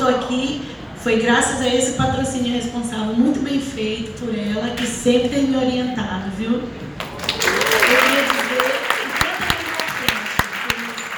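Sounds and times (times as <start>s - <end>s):
speech: 0.3s - 6.9s
crowd applauding: 7.0s - 11.1s.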